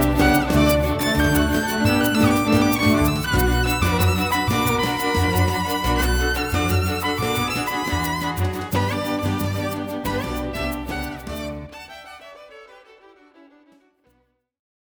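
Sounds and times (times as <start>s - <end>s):
harmonium: 0.0s - 11.7s.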